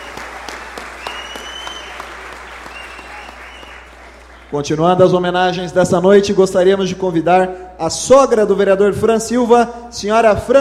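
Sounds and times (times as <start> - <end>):
round of applause: 0.0 - 4.6
speech: 4.5 - 10.5.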